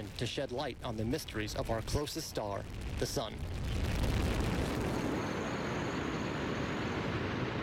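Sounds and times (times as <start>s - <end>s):
speech: 0.1s - 4.0s
Delta IV Heavy rocket liftoff roar from three RS-68 engines at full thrust: 3.4s - 7.6s.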